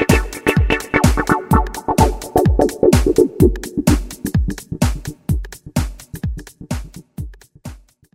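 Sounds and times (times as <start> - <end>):
square wave chord on a Yamaha YPT-400 keyboard: 0.0 - 5.1.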